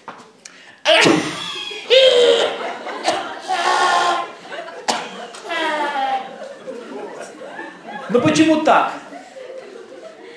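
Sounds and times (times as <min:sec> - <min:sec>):
exaggerated cough imitation: 0:00.9 - 0:05.8
laughter: 0:01.4 - 0:10.3
speech: 0:08.1 - 0:09.0.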